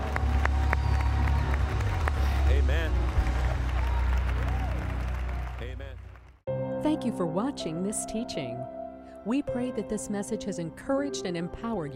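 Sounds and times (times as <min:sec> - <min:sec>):
church congregation clapping in praise: 0:00.0 - 0:06.4
speech: 0:07.0 - 0:11.9.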